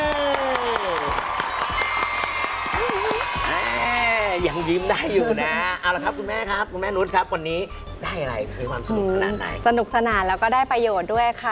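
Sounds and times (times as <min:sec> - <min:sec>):
applause for Team Megadina at a children's media award ceremony: 0:00.0 - 0:04.0
speech: 0:04.5 - 0:11.4.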